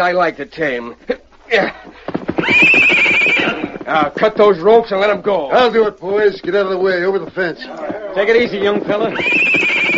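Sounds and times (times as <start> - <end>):
speech: 0.0 - 2.8, 3.9 - 9.8
hooves stamping rapidly: 1.2 - 9.9
horse whinnying: 2.1 - 4.0, 7.6 - 9.9.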